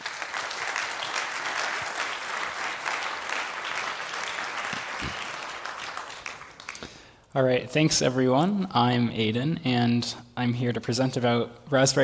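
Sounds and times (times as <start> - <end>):
audience applauding: 0.0 - 7.1
speech: 7.4 - 12.0.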